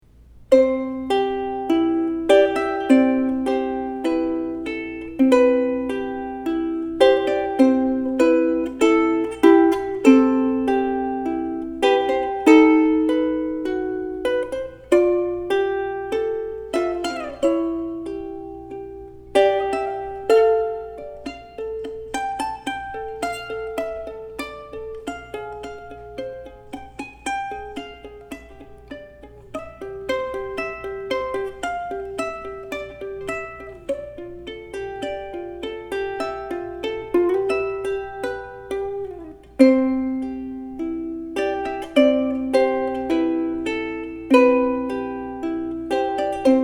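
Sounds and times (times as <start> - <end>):
ukulele solo: 0.0 - 46.6.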